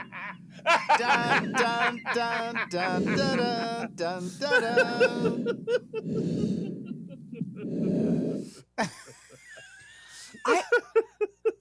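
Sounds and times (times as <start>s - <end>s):
laughter: 0.0s - 7.8s, 8.8s - 11.5s
speech: 0.6s - 6.8s, 8.8s - 9.1s
gasping wheezy vocal sounds: 2.7s - 8.8s
heavy breathing through a CPAP machine mask: 2.7s - 8.8s, 10.0s - 10.4s.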